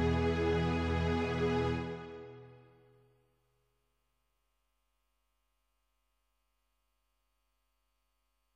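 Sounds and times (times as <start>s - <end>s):
strings: 0.0s - 2.7s.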